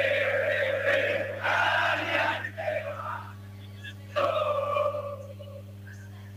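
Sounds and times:
Argentine barra brava football fans chanting in the stands: 0.0 - 3.4, 4.1 - 5.2
steady low hum: 0.0 - 6.3.

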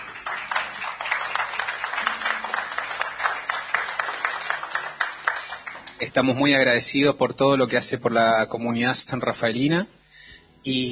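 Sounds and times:
crowd applause: 0.0 - 6.0
speech: 6.0 - 10.0, 10.6 - 10.8.

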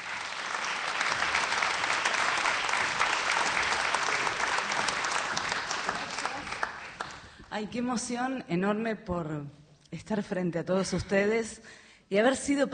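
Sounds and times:
audience applause: 0.0 - 7.4
speech: 7.6 - 12.7.

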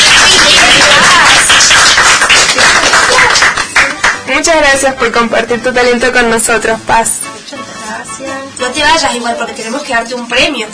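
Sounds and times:
audience applause: 0.0 - 4.2
speech: 4.4 - 7.2, 8.7 - 10.7.

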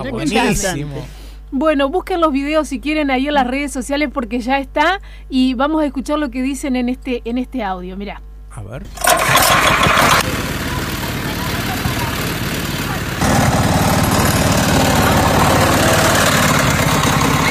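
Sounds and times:
speech: 0.0 - 10.4
engine of homemade fridge car: 8.9 - 17.5.

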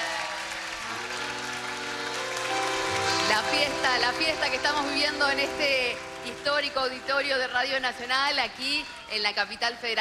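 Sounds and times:
audience applause: 0.0 - 9.5
speech: 3.6 - 10.0.

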